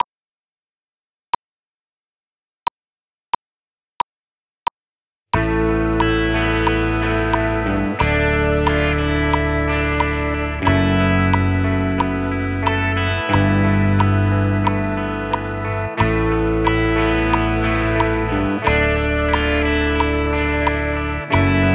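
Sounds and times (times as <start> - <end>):
guitar: 5.4 - 21.7.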